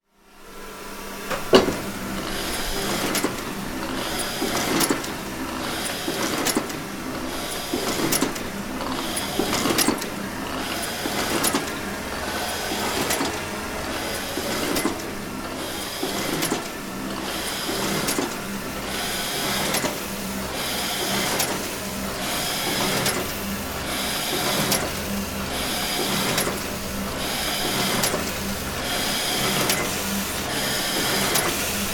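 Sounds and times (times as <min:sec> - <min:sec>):
rotary cylinder printing press running: 0:00.4 - 0:31.9.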